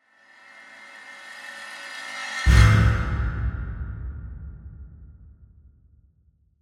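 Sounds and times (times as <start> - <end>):
slow metallic scrape to hit: 0.0 - 3.4.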